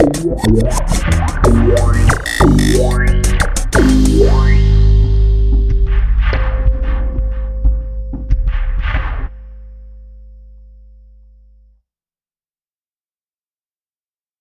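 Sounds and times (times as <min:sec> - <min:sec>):
ME-20B guitar effects patch: 0:00.0 - 0:11.4.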